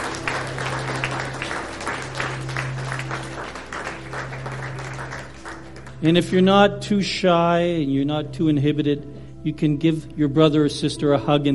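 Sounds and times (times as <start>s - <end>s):
audience clapping: 0.0s - 6.4s
speech: 6.0s - 11.5s.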